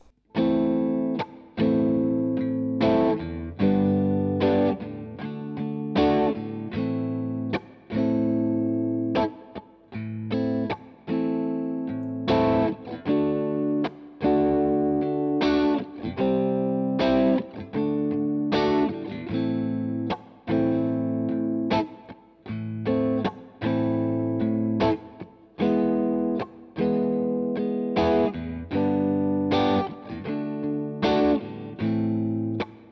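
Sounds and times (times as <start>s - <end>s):
electric guitar playing a minor blues chord progression, overdriven: 0.0s - 32.9s.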